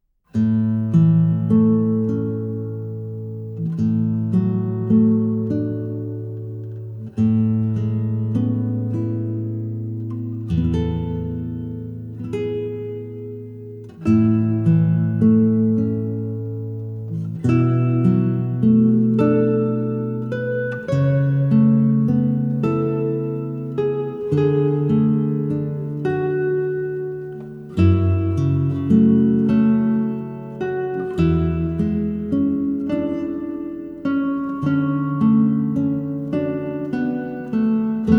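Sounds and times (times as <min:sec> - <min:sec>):
guitar: 0:00.0 - 0:38.1.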